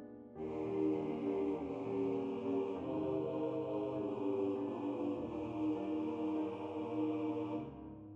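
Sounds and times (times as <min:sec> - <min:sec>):
choir singing in unison: 0:00.4 - 0:08.0.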